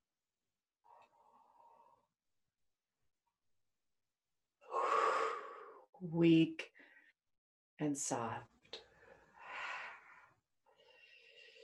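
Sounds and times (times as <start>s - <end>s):
deep breath: 0.8s - 2.2s, 4.6s - 5.9s, 8.9s - 11.6s
speech: 6.0s - 6.7s, 7.8s - 8.8s.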